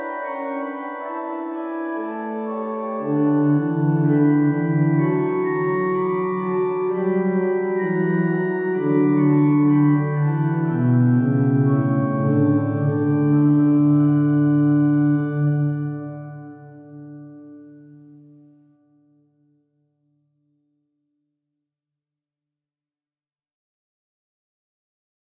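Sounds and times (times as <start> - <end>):
organ: 0.0 - 18.3.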